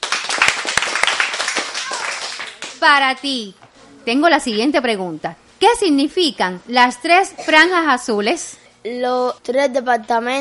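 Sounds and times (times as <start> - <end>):
group applauding: 0.0 - 2.9
speech: 2.8 - 10.3.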